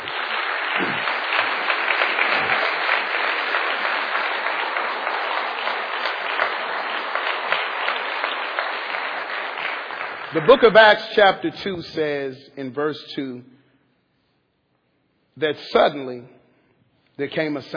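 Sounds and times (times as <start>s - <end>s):
audience hand clap of praise: 0.0s - 11.4s
speech: 10.3s - 13.6s, 15.4s - 16.4s, 17.2s - 17.7s.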